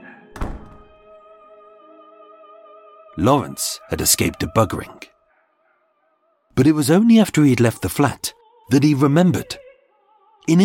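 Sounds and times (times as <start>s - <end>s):
door slamming shut: 0.3s - 1.1s
speech: 3.2s - 5.1s, 6.6s - 9.6s, 10.4s - 10.6s.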